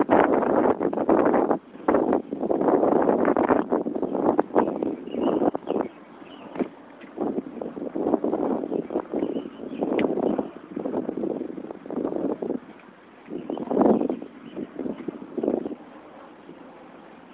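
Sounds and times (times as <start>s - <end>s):
wind: 0.0s - 17.3s
birds: 4.0s - 10.8s, 12.6s - 17.3s.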